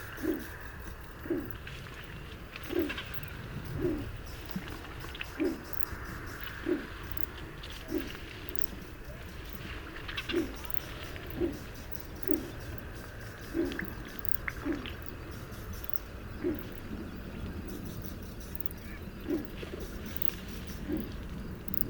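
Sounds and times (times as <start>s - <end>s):
domestic pigeon cooing: 0.0s - 1.6s, 2.6s - 21.2s
faint clicks: 0.0s - 21.8s.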